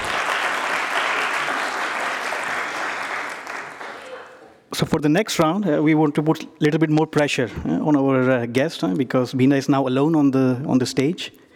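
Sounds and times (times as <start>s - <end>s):
audience clapping: 0.0s - 4.7s
speech: 4.8s - 11.4s.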